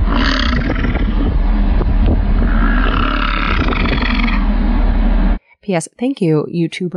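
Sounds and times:
male bison grunting: 0:00.0 - 0:04.8
speech: 0:05.7 - 0:06.9.

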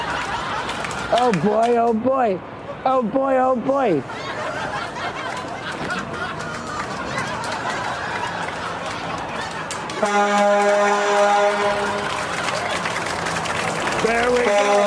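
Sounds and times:
laughter: 0:00.0 - 0:01.6, 0:04.0 - 0:10.1, 0:11.5 - 0:14.8
speech: 0:01.1 - 0:04.2, 0:10.0 - 0:11.9, 0:14.1 - 0:14.8
truck horn honking: 0:10.0 - 0:12.4, 0:14.0 - 0:14.8.

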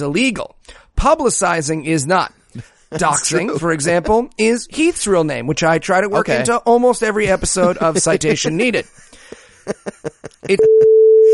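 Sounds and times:
speech: 0:00.0 - 0:11.3
laughter: 0:02.6 - 0:04.0, 0:07.2 - 0:10.9
censor bleep tone: 0:10.6 - 0:11.3.

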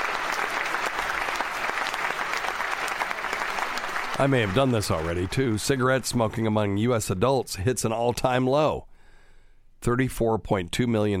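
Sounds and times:
applause: 0:00.0 - 0:06.6
speech: 0:04.2 - 0:08.9, 0:09.8 - 0:11.1.

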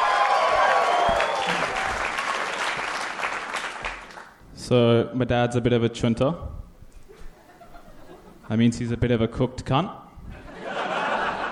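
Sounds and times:
comedy club audience applause: 0:00.0 - 0:04.3
audience whistles: 0:00.9 - 0:01.8
speech: 0:04.7 - 0:06.6, 0:08.5 - 0:10.0
laughter: 0:07.1 - 0:08.5, 0:10.3 - 0:11.4.

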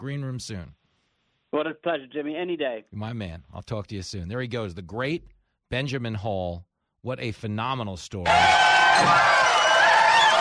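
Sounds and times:
speech: 0:00.0 - 0:00.8, 0:01.5 - 0:09.5
crowd cheering wildly: 0:08.2 - 0:10.3.

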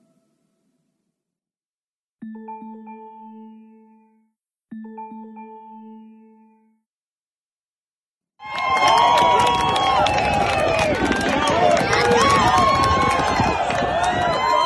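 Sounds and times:
crowd cheering at a lacrosse game: 0:08.4 - 0:14.6.

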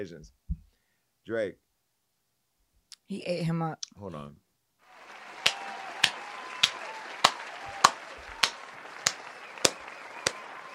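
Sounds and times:
speech: 0:00.0 - 0:00.5, 0:01.3 - 0:01.6, 0:03.1 - 0:04.4
applause: 0:04.8 - 0:10.7.

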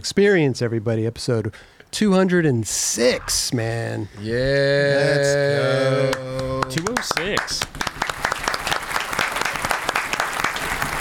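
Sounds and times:
speech: 0:00.0 - 0:07.9
crowd applauding: 0:05.8 - 0:10.9
loud sharp clap: 0:06.4 - 0:10.9.

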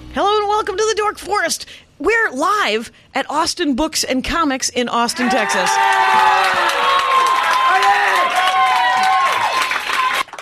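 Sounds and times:
speech: 0:00.2 - 0:07.1
applause: 0:05.8 - 0:10.3.

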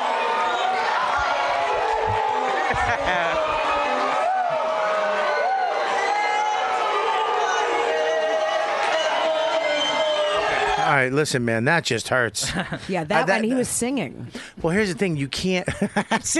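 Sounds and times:
audience booing a performer: 0:00.0 - 0:11.1
laughter: 0:01.9 - 0:04.3, 0:12.4 - 0:13.1, 0:15.6 - 0:16.3
speech: 0:11.0 - 0:16.3.

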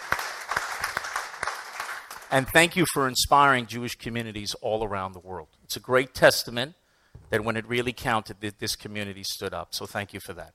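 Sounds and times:
audience applause: 0:00.0 - 0:02.4
speech: 0:02.3 - 0:10.5.

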